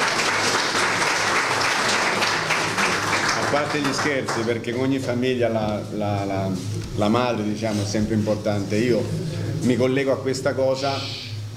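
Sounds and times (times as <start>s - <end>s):
audience applause: 0.0s - 4.7s
speech: 3.5s - 11.5s.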